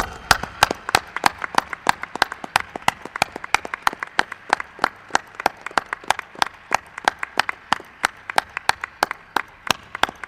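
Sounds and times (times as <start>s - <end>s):
audience applause: 0.0s - 10.2s.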